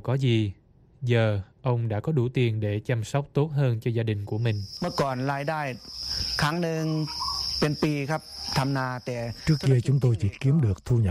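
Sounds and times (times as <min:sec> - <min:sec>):
speech: 0:00.0 - 0:11.0
farmed crickets chirping: 0:04.0 - 0:11.0.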